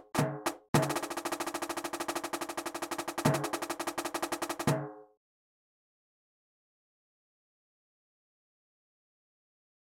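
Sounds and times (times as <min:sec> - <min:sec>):
Spielmannszug marching band percussion: 0:00.0 - 0:05.0.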